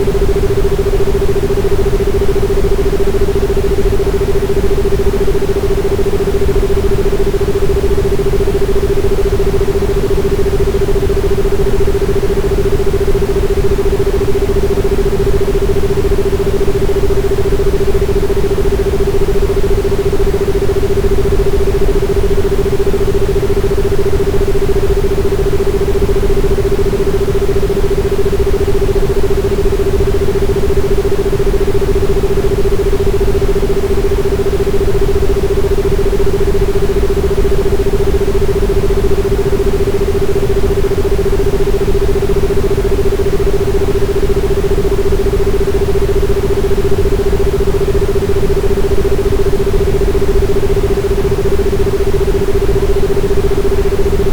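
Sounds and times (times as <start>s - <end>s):
anti-fatigue white noise: 0.0s - 54.3s.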